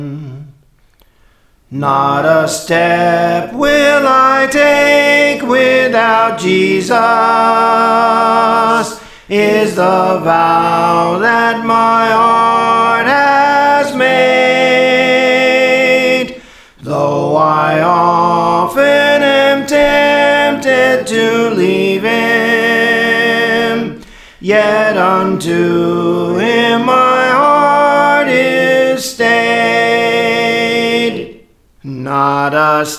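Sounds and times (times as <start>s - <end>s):
soprano singing songs: 1.7s - 32.9s.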